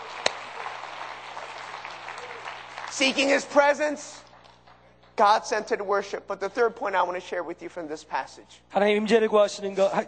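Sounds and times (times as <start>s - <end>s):
church congregation applauding during a worship service: 0.0s - 5.5s
speech: 3.0s - 4.2s, 5.2s - 10.0s.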